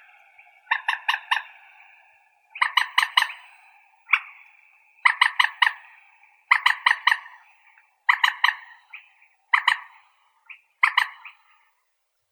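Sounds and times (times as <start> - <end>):
common moorhen Gallinula chloropus calling: 0.0 - 11.6.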